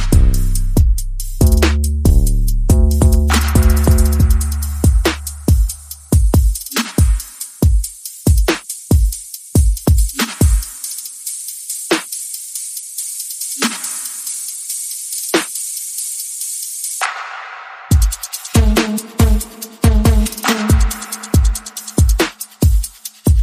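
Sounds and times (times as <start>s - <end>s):
bass: 0.0s - 6.1s
percussion: 0.0s - 23.4s.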